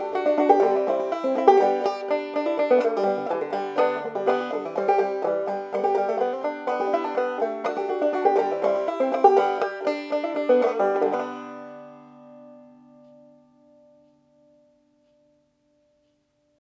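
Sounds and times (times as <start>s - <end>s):
banjo playing G: 0.0s - 13.6s.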